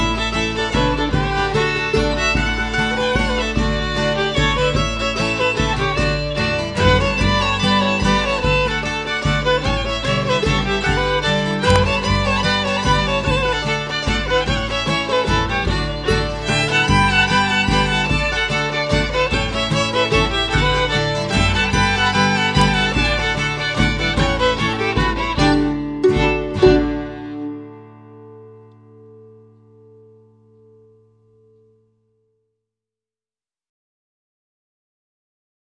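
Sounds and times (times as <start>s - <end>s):
mazurka: 0.0s - 27.7s.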